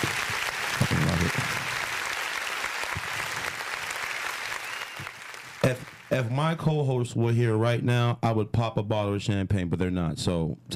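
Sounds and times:
crowd applause: 0.0 - 6.4
speech: 5.7 - 10.7.

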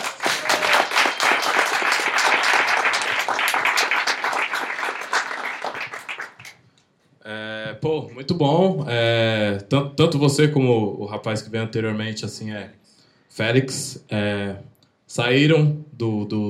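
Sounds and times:
audience applause: 0.0 - 6.6
speech: 7.8 - 16.4.

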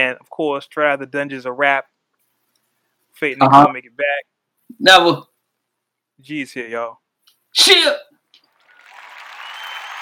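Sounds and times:
speech: 0.0 - 2.0, 3.2 - 5.3, 6.2 - 7.0, 7.6 - 8.1
weak low applause: 8.6 - 10.0.

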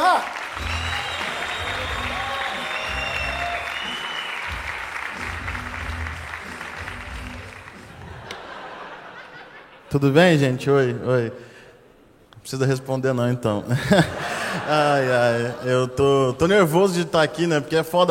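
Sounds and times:
audience applause: 0.0 - 9.4
laughter: 7.7 - 9.9, 13.7 - 16.1
speech: 9.9 - 11.5, 12.4 - 18.0.

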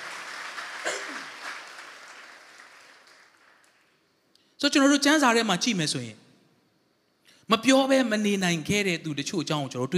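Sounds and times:
church congregation clapping hands in praise: 0.0 - 4.2
speech: 4.6 - 6.2, 7.5 - 9.9.

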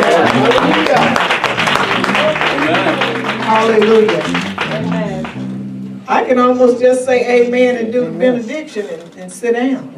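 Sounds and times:
audience hand clapping: 0.0 - 5.5
speech: 6.3 - 9.9.

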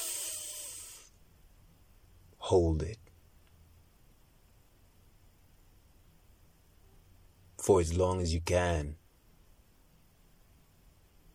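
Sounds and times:
slow deep inhalation: 0.0 - 1.2
speech: 2.5 - 3.0, 7.7 - 9.0.

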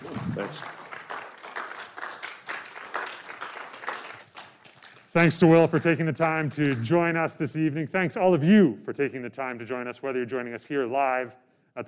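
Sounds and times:
audience applause: 0.0 - 5.6
speech: 0.4 - 0.8, 5.2 - 11.8.

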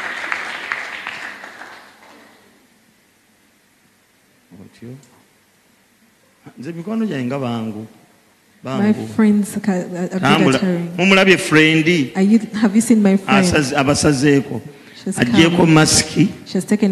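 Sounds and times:
audience applause: 0.0 - 2.6
speech: 4.8 - 5.2, 6.5 - 8.0, 8.6 - 16.9.

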